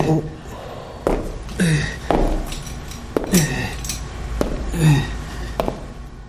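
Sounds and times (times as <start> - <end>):
speech: 0.0 - 0.4
clanking metallic footsteps of a worker in welding gear in a factory workshop: 1.1 - 5.0, 5.6 - 6.0.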